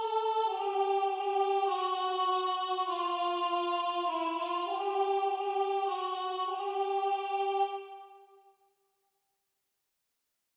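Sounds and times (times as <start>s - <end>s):
soprano singing: 0.0s - 8.2s.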